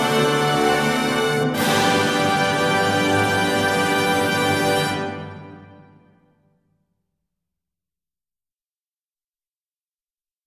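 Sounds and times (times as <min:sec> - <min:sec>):
music: 0:00.0 - 0:07.0.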